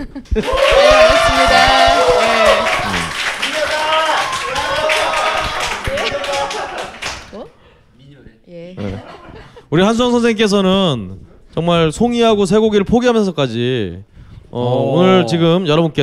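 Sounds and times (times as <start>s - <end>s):
speech: 0.0s - 1.7s, 9.7s - 16.0s
audience clapping: 0.2s - 7.5s
voices calling and cheering: 0.4s - 7.4s.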